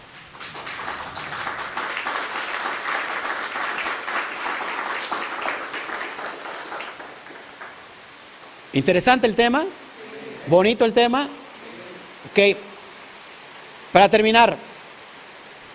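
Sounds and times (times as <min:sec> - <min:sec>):
audience applause: 0:00.0 - 0:08.5
speech: 0:08.8 - 0:09.8, 0:10.5 - 0:11.4, 0:12.4 - 0:12.7, 0:13.9 - 0:14.7.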